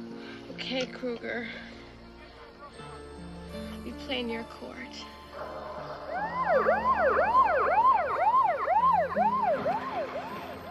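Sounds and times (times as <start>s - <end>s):
speech: 0.6s - 1.8s, 3.9s - 5.6s, 6.5s - 7.5s, 9.1s - 10.4s
ambulance siren wailing as the ambulance leaves a house: 5.3s - 10.6s.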